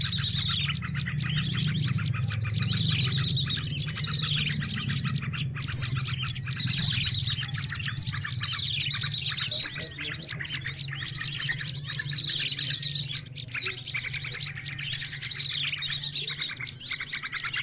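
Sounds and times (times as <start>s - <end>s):
bird song with high chirps and fast trilled phrases: 0.0s - 17.6s.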